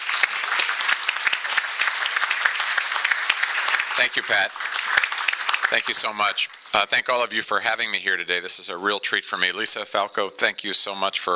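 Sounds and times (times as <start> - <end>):
audience applause welcoming a speaker at an Alaska gathering: 0.0 - 7.4
speech: 4.0 - 4.7, 5.7 - 11.3.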